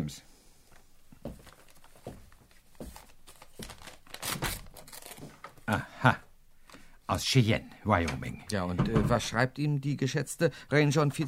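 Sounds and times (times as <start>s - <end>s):
speech: 0.1s - 0.3s, 5.7s - 6.2s, 7.1s - 11.2s
paper telegram torn open and unfolded: 3.0s - 5.4s.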